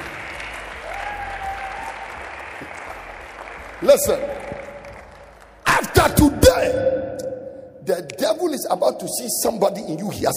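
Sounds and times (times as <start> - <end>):
audience clapping: 0.0 - 6.4
speech: 3.8 - 4.6, 7.9 - 10.3.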